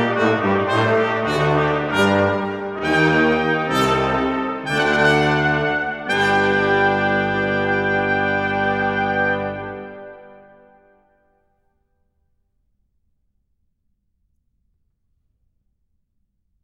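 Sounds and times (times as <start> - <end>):
organ fugue in G minor: 0.0 - 10.8.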